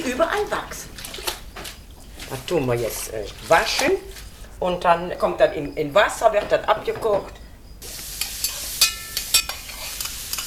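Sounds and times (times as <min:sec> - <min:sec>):
speech: 0:00.0 - 0:00.9, 0:02.3 - 0:07.4
onions sizzling in a hot pot: 0:07.7 - 0:10.4.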